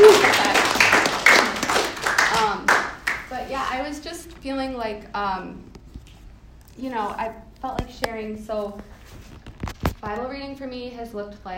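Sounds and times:
audience clapping: 0:00.0 - 0:03.5
speech: 0:04.4 - 0:05.8, 0:06.8 - 0:09.3, 0:10.0 - 0:11.5.

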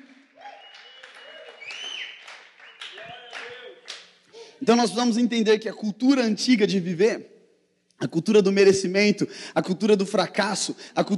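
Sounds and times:
audience applause: 0:00.0 - 0:04.0
cheers and whoops: 0:00.1 - 0:03.8
speech: 0:04.6 - 0:07.3, 0:08.0 - 0:11.1.

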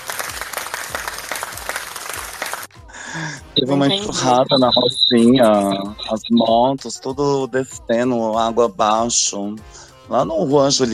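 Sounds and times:
applause: 0:00.0 - 0:02.8
speech: 0:03.2 - 0:10.9.

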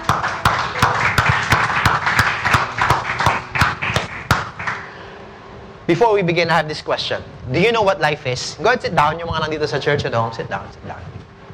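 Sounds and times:
audience clapping: 0:00.0 - 0:05.0
speech: 0:05.9 - 0:11.1.

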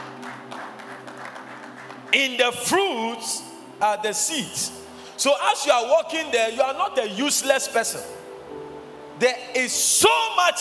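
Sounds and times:
audience clapping: 0:00.0 - 0:02.7
speech: 0:02.1 - 0:08.2, 0:09.2 - 0:10.5.

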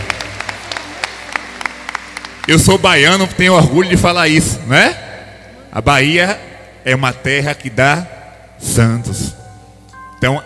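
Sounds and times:
audience applause: 0:00.0 - 0:02.8
speech: 0:02.4 - 0:05.0, 0:05.7 - 0:09.4, 0:10.2 - 0:10.4.

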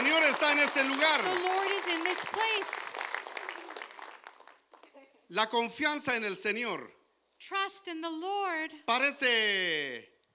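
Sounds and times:
audience applause: 0:00.0 - 0:05.0
speech: 0:00.4 - 0:03.0, 0:05.3 - 0:10.1.

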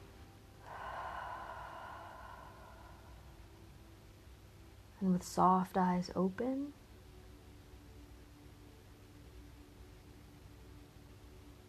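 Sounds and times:
deep breath in: 0:00.6 - 0:03.6
speech: 0:05.0 - 0:06.8.

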